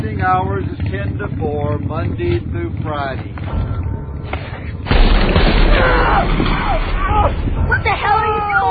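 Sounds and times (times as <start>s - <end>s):
speech: 0.2s - 4.5s, 5.2s - 8.7s
gunshot: 4.8s - 7.3s.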